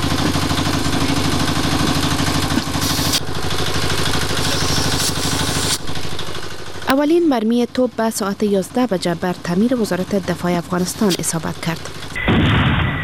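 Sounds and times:
tanks rumbling through a city: 0.0 - 12.4
short hissing bursts: 2.8 - 3.2, 3.8 - 5.8
speech: 7.0 - 12.0.

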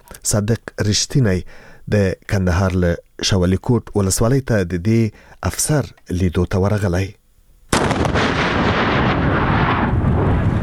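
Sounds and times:
speech: 0.2 - 7.2
landmine found on the Kandahar–Uruzgan highway detonating: 7.7 - 10.6
heavy rumble: 7.8 - 10.6.

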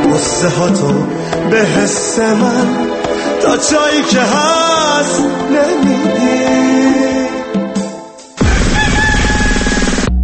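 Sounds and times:
speech: 0.2 - 7.1
rooster crowing at dawn: 8.4 - 10.1.

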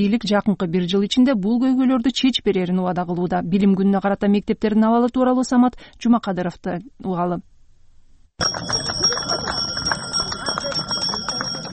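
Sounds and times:
speech: 0.0 - 7.5, 8.4 - 9.5
crowd murmur and voices: 8.4 - 11.7
small handbell ringing the first school bell: 8.4 - 11.7.

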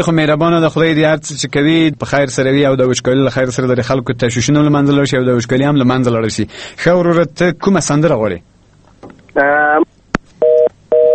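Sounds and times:
speech: 0.0 - 9.9
buzzy harmonic telephone tone: 1.2 - 6.5
steady evenly pitched telephone beeps: 10.4 - 11.1.

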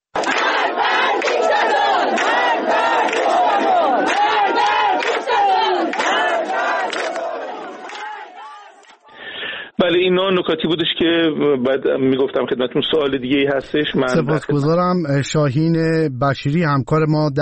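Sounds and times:
crowd chanting slogans against the Islamic Republic: 0.2 - 9.2
speech: 10.1 - 17.4.

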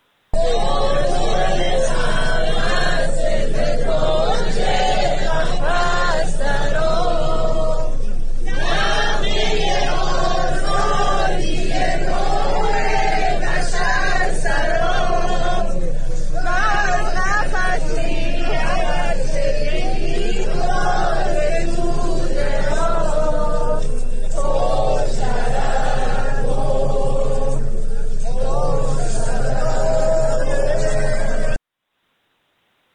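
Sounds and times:
crowd of women singing together: 0.4 - 31.6.

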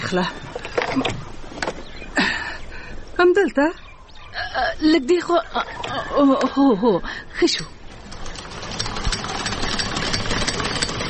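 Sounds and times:
speech: 0.1 - 1.3, 3.2 - 3.8, 4.6 - 7.8
sewing machine for home tailoring bought in Gujrat running: 7.9 - 11.0.

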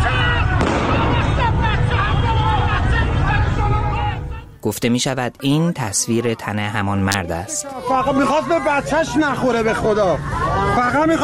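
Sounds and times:
crowd shouting in a street: 0.0 - 4.5, 6.0 - 11.2
gunshot in a street: 0.6 - 1.4
speech: 4.7 - 11.2.

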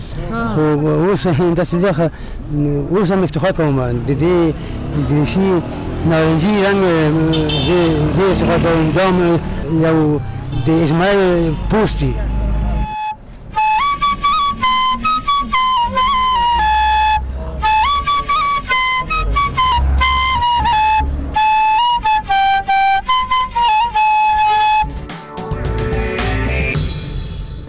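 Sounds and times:
speech: 0.2 - 12.3
flute played by a Kabul municipality worker: 7.3 - 8.3, 9.7 - 26.9.

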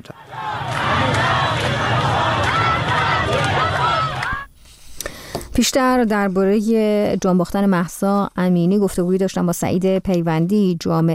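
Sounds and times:
protesting women and men shouting: 0.0 - 4.5
speech: 5.6 - 11.1.

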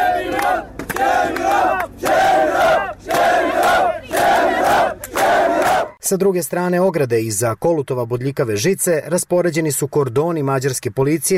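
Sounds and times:
crowd of migrants at the Hungarian border fence chanting a protest slogan: 0.0 - 6.0
speech: 6.1 - 11.3.

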